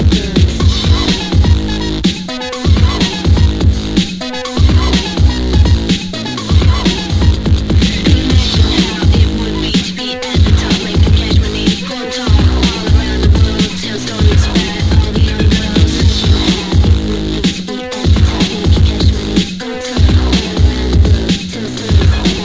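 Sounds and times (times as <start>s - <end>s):
music: 0.0s - 22.4s.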